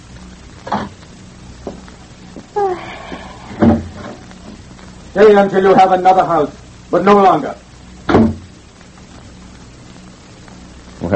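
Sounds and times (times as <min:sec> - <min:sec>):
door closing behind a man leaving a room: 0:03.6 - 0:04.2, 0:08.1 - 0:08.5
speech: 0:05.2 - 0:07.6.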